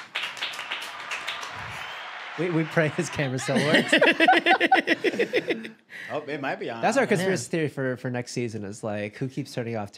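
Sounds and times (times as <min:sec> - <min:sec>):
small group of people clapping: 0:00.0 - 0:04.6
speech: 0:02.4 - 0:09.9
laughter: 0:03.1 - 0:05.8.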